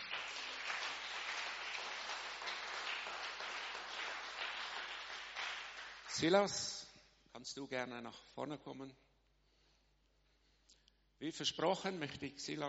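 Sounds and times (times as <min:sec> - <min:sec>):
audience applause: 0:00.0 - 0:06.3
speech: 0:06.2 - 0:06.8, 0:07.4 - 0:09.1, 0:11.2 - 0:12.6.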